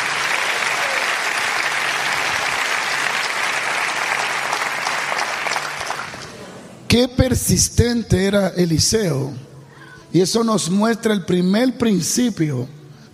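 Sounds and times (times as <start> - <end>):
loud audience applause: 0.0 - 6.4
speech: 6.9 - 9.5, 10.1 - 12.8.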